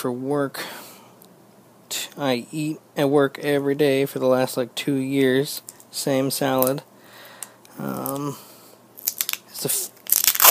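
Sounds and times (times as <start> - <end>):
speech: 0.0 - 0.8, 2.2 - 6.9, 7.8 - 8.5, 9.6 - 9.9
duct tape torn from the roll to tape a salad bowl lid shut: 9.0 - 10.4.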